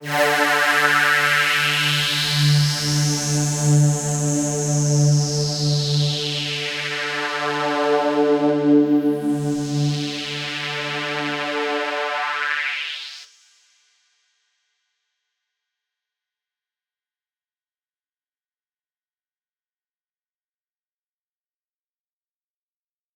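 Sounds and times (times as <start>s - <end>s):
psytrance synth pad: 0.0s - 13.1s.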